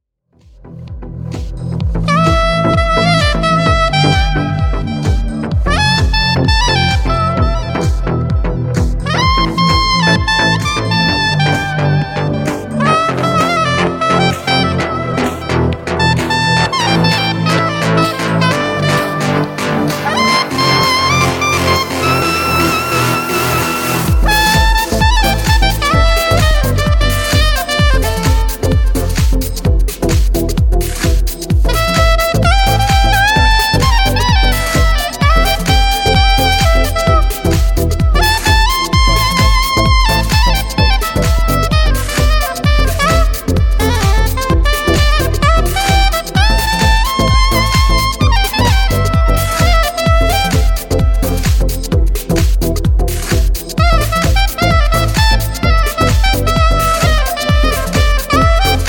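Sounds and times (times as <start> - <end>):
house music saxophone: 0.4 - 58.8.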